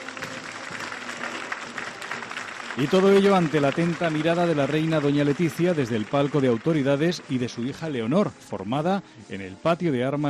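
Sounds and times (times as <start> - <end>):
spectators applauding at a military academy ceremony: 0.0 - 7.7
speech: 2.8 - 10.2.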